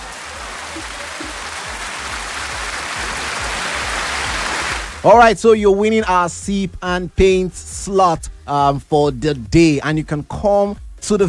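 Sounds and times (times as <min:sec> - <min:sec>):
many hands clapping: 0:00.0 - 0:05.0
speech: 0:05.0 - 0:11.2.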